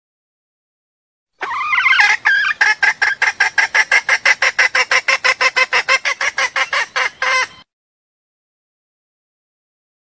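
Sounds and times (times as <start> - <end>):
junglefowl squawking and clucking: 1.4 - 7.7.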